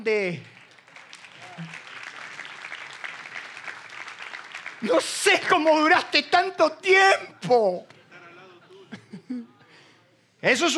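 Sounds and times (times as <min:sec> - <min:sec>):
speech: 0:00.0 - 0:00.6, 0:04.8 - 0:07.9, 0:10.4 - 0:10.7
standing audience applauding: 0:00.0 - 0:06.2.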